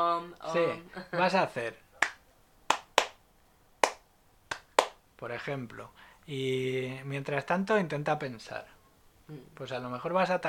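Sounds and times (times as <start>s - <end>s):
speech: 0.0s - 1.8s, 5.2s - 10.4s
hand claps: 2.0s - 3.2s, 3.8s - 5.0s.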